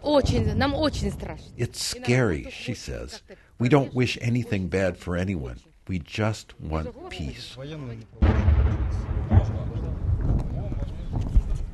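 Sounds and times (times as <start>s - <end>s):
speech: 0.0s - 9.4s
gunshot fired over heads by local militia fighters: 8.2s - 11.7s.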